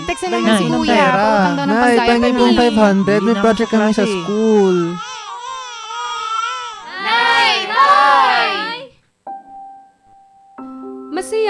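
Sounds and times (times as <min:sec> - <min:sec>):
infant crying in wavering wails: 0:00.0 - 0:08.9
speech: 0:00.1 - 0:05.1.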